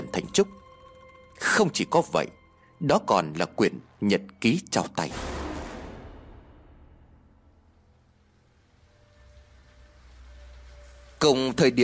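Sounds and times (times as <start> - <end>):
speech: 0.4 - 0.6, 1.4 - 5.3, 11.2 - 11.8
heavy rain: 7.4 - 11.8.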